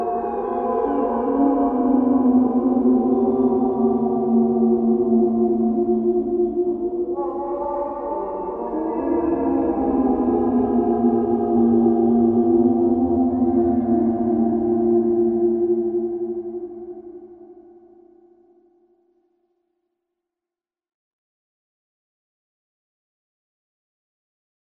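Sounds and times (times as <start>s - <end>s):
moaning spirits: 0.0s - 17.2s.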